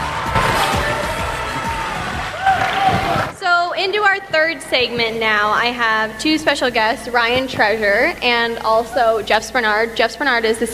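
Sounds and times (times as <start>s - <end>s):
crowd applause: 0.0s - 3.4s
speech: 3.8s - 10.7s.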